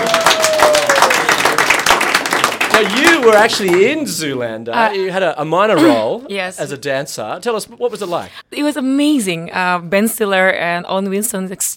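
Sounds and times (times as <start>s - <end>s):
round of applause: 0.0s - 4.0s
speech: 2.8s - 11.7s.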